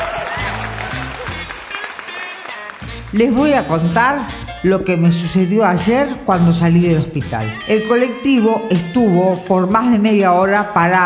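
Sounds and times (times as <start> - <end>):
audience applause welcoming a stand-up comedian: 0.0 - 4.0
speech: 3.1 - 11.0.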